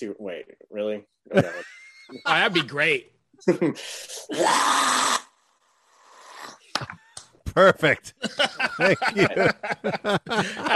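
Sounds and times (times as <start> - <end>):
speech: 0.0 - 5.2, 7.6 - 10.7
laughter: 1.3 - 2.8, 8.1 - 10.7
metal vocalist scream: 4.3 - 5.4.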